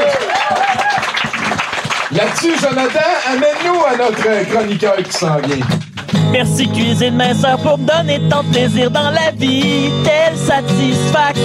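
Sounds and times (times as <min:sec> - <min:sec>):
audience applause: 0:00.0 - 0:06.3
speech: 0:02.1 - 0:11.4.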